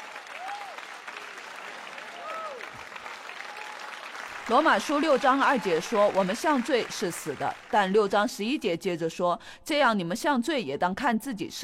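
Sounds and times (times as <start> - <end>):
audience applause: 0.0 - 8.2
speech: 4.5 - 11.6.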